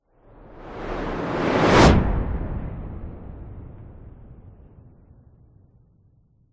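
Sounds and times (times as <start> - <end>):
fast close cinematic whoosh with doppler: 0.4 - 4.6.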